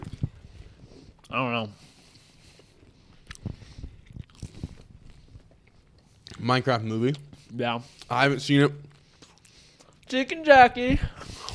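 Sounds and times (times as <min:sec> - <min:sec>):
person eating: 0:00.0 - 0:06.5, 0:08.8 - 0:10.1
speech: 0:01.3 - 0:01.9, 0:06.4 - 0:08.9, 0:10.1 - 0:11.2.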